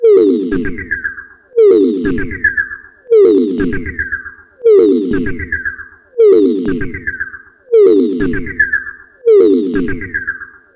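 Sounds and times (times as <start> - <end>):
alarm: 0.0 - 10.7.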